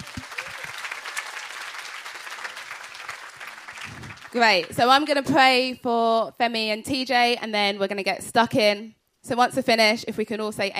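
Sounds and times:
audience applause: 0.0s - 4.8s
speech: 4.3s - 10.7s.

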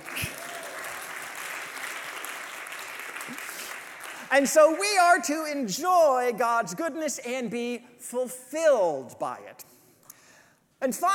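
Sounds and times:
audience applause: 0.0s - 4.3s
speech: 4.3s - 9.7s, 10.8s - 11.1s.

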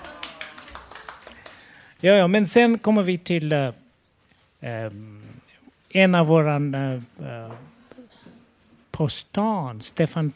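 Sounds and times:
scattered hand clapping from a small group: 0.0s - 1.9s
speech: 2.0s - 3.8s, 4.6s - 7.7s, 9.0s - 10.3s.

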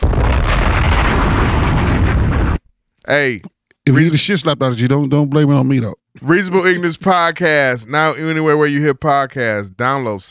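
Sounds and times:
bomb explosion sound effect: 0.0s - 2.7s
speech: 3.1s - 10.2s.

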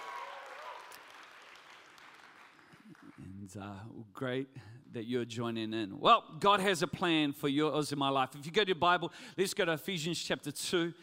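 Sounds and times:
church congregation applauding to welcome its Napier members: 0.0s - 3.3s
speech: 3.2s - 11.0s.

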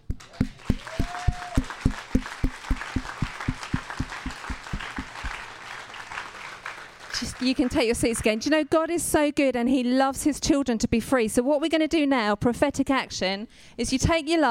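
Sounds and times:
audience clapping in a steady rhythm: 0.0s - 8.5s
person whooping: 0.3s - 2.0s
speech: 7.4s - 14.5s.

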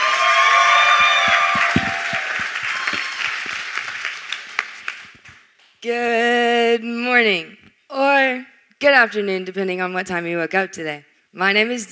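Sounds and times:
crowd noise: 0.0s - 4.9s
audience applauding to welcome a young speaker: 0.0s - 5.4s
speech: 5.8s - 7.5s, 8.1s - 11.8s.

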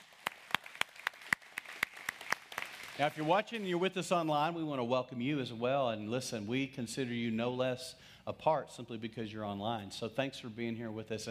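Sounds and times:
audience hand claps in unison: 0.0s - 3.8s
speech: 3.0s - 11.3s.

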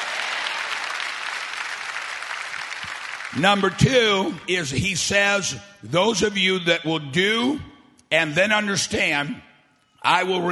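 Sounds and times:
audience clapping: 0.0s - 3.9s
speech: 3.3s - 10.4s.

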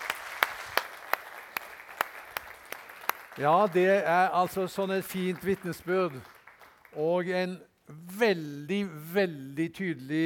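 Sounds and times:
audience applause: 0.0s - 7.0s
sharp rhythmic claps: 0.0s - 7.3s
speech: 3.4s - 6.3s, 6.9s - 10.2s.

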